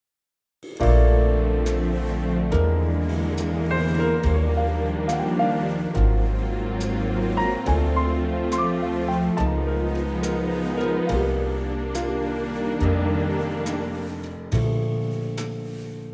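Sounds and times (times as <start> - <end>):
orchestra playing in B flat: 0.8 - 15.8.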